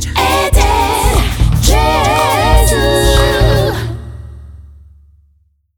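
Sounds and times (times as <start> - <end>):
scat singing: 0.2 - 4.0.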